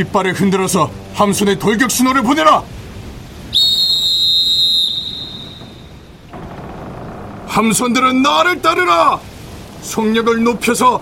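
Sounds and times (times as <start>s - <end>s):
speech: 0.0s - 2.8s, 7.6s - 11.0s
signal whistle blown for ship charge: 3.5s - 6.0s.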